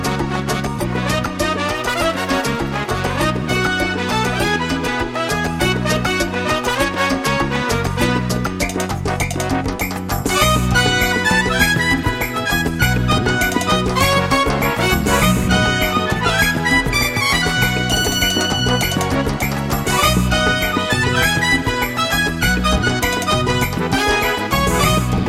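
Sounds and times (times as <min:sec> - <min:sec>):
salsa music: 0:00.0 - 0:25.2.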